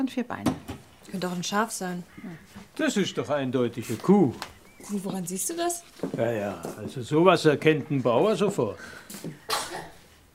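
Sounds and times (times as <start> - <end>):
speech: 0.0 - 9.4
sneeze: 9.5 - 10.0.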